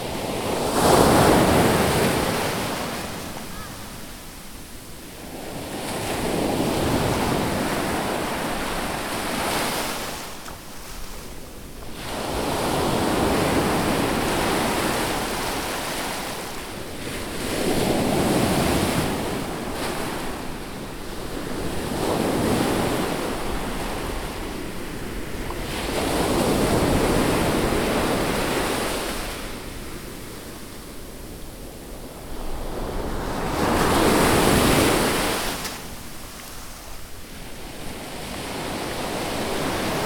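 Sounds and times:
whirling sea waves at the shore: 0.0 - 40.0.

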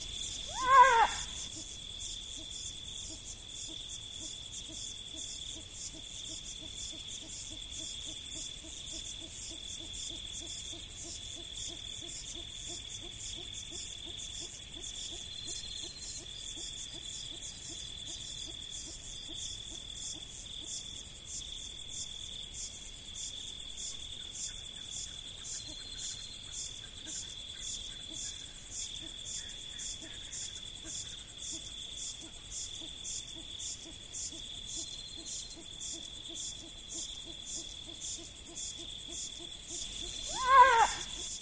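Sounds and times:
insects in the prairies: 0.0 - 41.4
jackals in the prairies: 0.4 - 1.4, 40.0 - 41.2.

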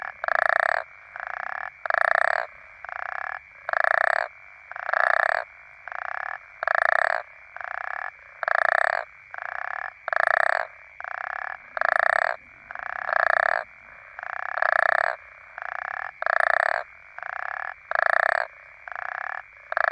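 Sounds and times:
African common toads calling in chorus: 0.0 - 19.8.

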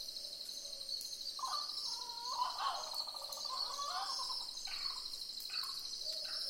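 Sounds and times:
boobook owls calling in chorus: 1.4 - 6.4.

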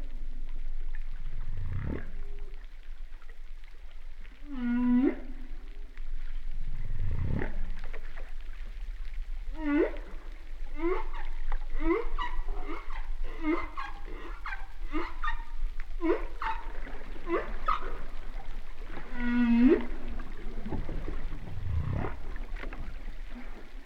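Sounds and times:
humpback whale song: 3.9 - 7.8, 9.4 - 23.8.

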